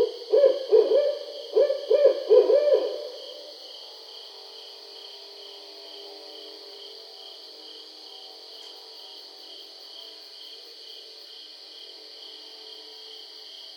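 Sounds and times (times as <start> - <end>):
barred owl hooting: 0.0 - 3.5.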